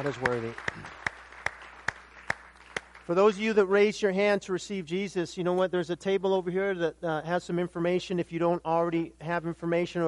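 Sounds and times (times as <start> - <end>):
speech: 0.0 - 1.0, 3.1 - 10.0
hand claps: 0.0 - 3.1.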